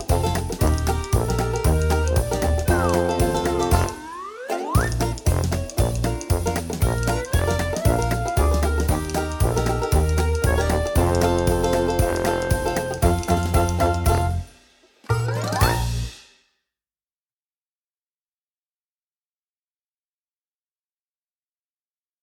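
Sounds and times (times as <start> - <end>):
walk-on music: 0.0 - 16.2.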